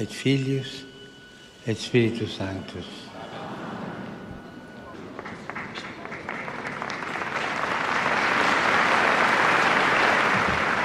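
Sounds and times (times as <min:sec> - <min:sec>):
speech: 0:00.0 - 0:00.9, 0:01.6 - 0:03.1
laughter: 0:03.0 - 0:06.2
applause: 0:05.1 - 0:10.8.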